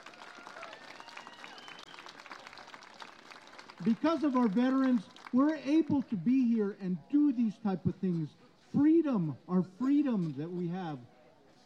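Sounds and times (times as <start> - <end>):
audience applause for veterans: 0.0 - 5.3
speech: 3.8 - 11.1.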